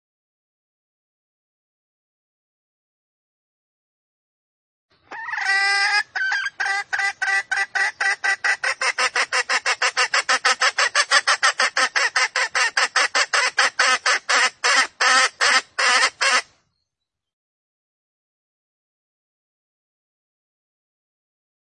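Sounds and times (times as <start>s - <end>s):
Junglefowl hen clucking: 5.0s - 16.5s.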